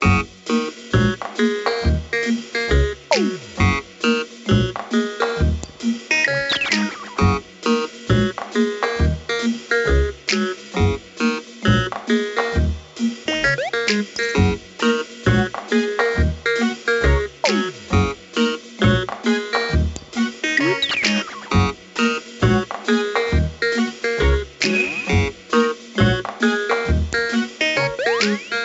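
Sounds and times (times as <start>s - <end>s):
menu music loop: 0.0s - 28.6s.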